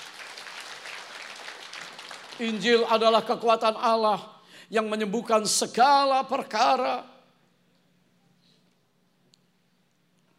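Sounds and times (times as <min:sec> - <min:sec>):
audience applause: 0:00.0 - 0:02.9
speech: 0:02.4 - 0:07.1.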